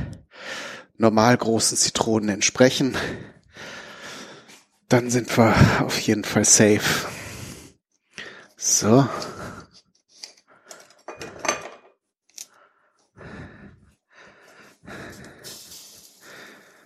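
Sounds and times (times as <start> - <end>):
speech: 1.0 - 3.7, 4.9 - 7.2, 8.6 - 9.3
pot hissing and bubbling on stove: 15.3 - 16.8.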